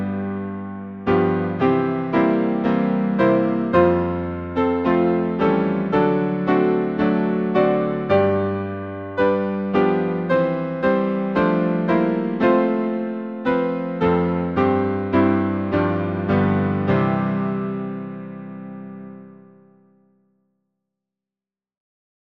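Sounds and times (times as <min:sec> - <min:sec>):
piano in Lancashire: 0:00.0 - 0:20.4.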